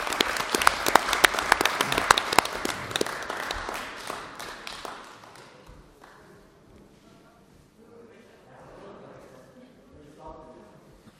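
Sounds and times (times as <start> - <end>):
audience applause: 0.0 - 6.2.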